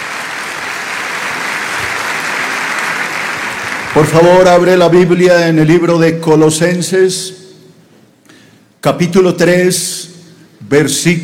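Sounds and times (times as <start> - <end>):
audience applause: 0.0 - 4.2
speech: 4.0 - 7.4, 8.8 - 10.1, 10.7 - 11.2.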